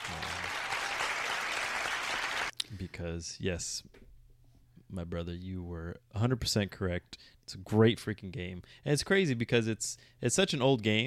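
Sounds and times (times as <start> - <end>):
applause sound effect: 0.0 - 2.5
speech: 3.0 - 4.0, 4.9 - 11.0.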